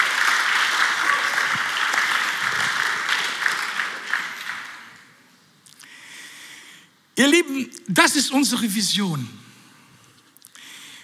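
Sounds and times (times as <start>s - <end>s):
audience applause: 0.0s - 5.1s
speech: 7.2s - 9.5s.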